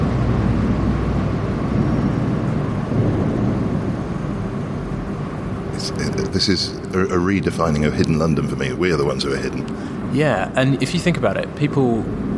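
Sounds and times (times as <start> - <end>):
boat engine rumble passing under a bridge: 0.0 - 12.3
speech: 6.4 - 12.3.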